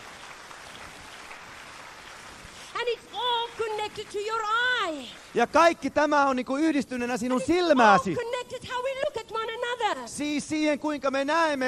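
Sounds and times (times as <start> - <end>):
congregation clapping during a church service: 0.0 - 6.3
speech: 2.8 - 11.6.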